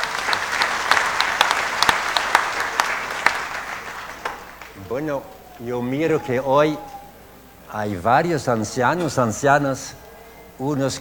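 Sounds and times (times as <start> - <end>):
audience applause: 0.0 - 7.1
speech: 4.9 - 6.9, 7.7 - 10.0, 10.6 - 10.9.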